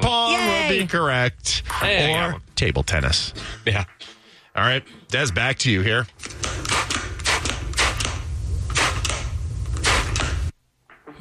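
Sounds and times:
low steady hum: 0.0 - 11.2
speech: 0.1 - 6.7
spray bottle of glass cleaner squirting: 6.4 - 10.4.

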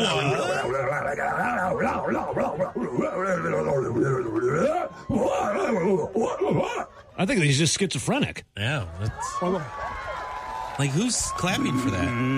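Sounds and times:
man's voice imitating a full moon howl: 0.0 - 6.9
speech: 1.1 - 10.0, 10.8 - 12.3.

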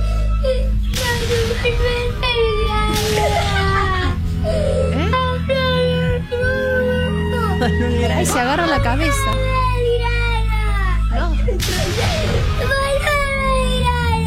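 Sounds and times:
young child crying: 0.0 - 14.2
laughter: 7.3 - 9.4, 11.1 - 12.4
speech: 8.1 - 9.5.

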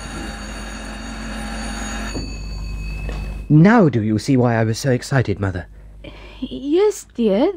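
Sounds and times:
electric bell ringing: 0.0 - 4.9
speech: 3.5 - 7.5.

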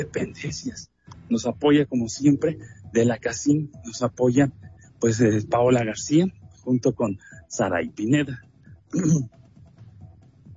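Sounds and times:
faint low murmurs: 0.0 - 8.4
speech: 0.0 - 9.4
person clearing throat: 8.9 - 9.3.

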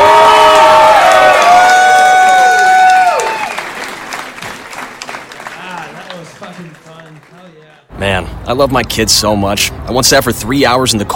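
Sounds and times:
crowd cheering and whooping: 0.0 - 4.7
crowd applauding: 0.0 - 7.9
speech: 8.5 - 11.1.

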